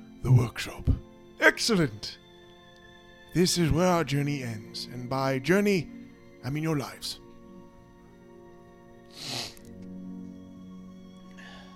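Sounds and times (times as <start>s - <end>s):
speech: 0.2s - 2.2s, 3.4s - 7.2s
person gasping: 9.1s - 9.7s.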